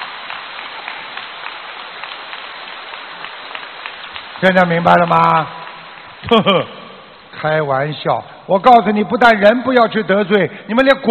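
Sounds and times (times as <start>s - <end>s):
audience applause: 0.0s - 7.1s
speech: 4.4s - 5.6s, 6.2s - 6.8s, 7.4s - 11.1s.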